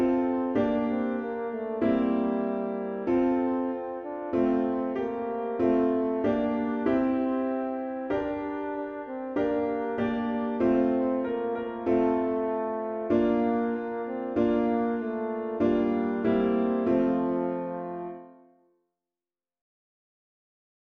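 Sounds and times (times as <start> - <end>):
french horn solo: 0.0 - 18.6.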